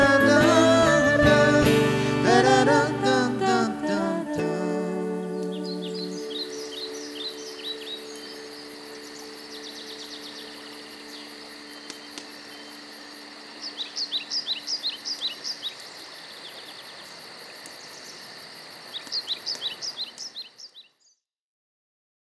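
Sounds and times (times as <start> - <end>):
duet: 0.0 - 6.7.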